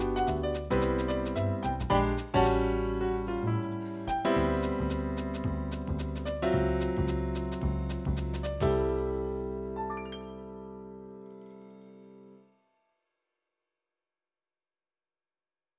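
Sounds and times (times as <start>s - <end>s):
MIDI jazz music: 0.0s - 9.4s.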